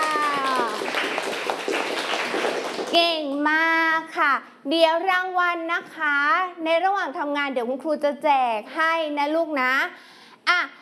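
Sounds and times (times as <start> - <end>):
schoolchildren in a classroom clapping for themselves: 0.0 - 3.2
speech: 4.2 - 10.8.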